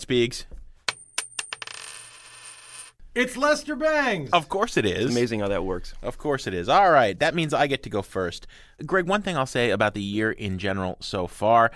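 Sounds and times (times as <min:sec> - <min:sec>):
speech: 0:00.1 - 0:00.6, 0:03.2 - 0:11.7
coin flipped and landing: 0:00.9 - 0:03.0.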